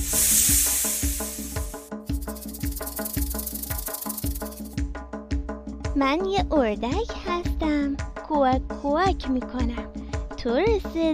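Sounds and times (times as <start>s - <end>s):
snake hissing: 0.0s - 4.8s
speech: 6.0s - 11.1s.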